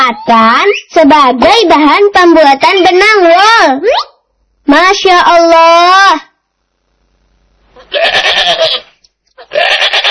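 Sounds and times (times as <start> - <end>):
speech: 0.1 - 4.1, 4.7 - 6.3, 7.9 - 8.8, 9.5 - 10.0
goat bleating: 7.8 - 10.0.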